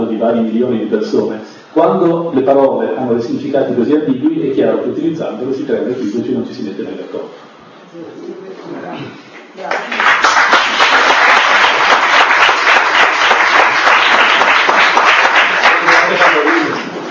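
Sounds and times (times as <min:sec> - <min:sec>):
speech: 0:00.2 - 0:10.0
audience applause: 0:09.7 - 0:17.1.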